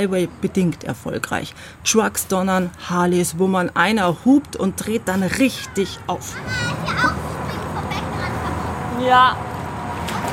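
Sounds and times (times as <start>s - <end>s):
speech: 0.0s - 7.1s, 9.0s - 9.5s
children playing and shouting at a motel pool: 5.0s - 10.3s.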